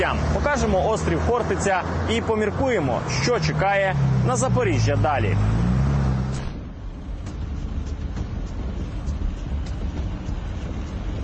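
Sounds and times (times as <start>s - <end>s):
speech: 0.0s - 5.7s
road traffic on the roads south of Zaporizhzhia, Ukraine: 0.0s - 11.2s
wind buffeting: 5.7s - 11.2s.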